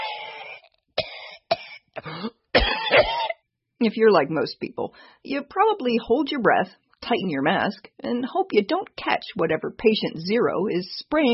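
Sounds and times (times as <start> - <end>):
person coughing in a rough phlegmy fit: 0.0 - 3.4
speech: 3.8 - 11.3.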